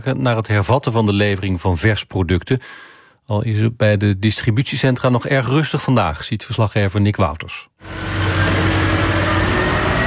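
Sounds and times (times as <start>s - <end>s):
speech: 0.0s - 8.7s
truck engine at a supermarket distribution centre in Tilburg: 7.8s - 10.0s.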